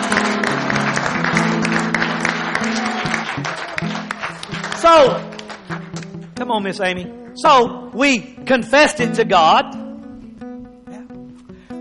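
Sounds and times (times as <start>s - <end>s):
audience clapping hands: 0.0s - 6.4s
speech: 4.9s - 5.2s, 6.4s - 9.8s.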